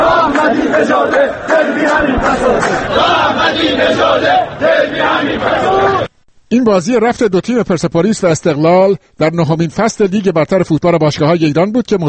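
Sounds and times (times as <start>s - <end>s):
football spectators chanting slogans outside Azadi Stadium: 0.0s - 6.1s
speech: 6.5s - 12.0s.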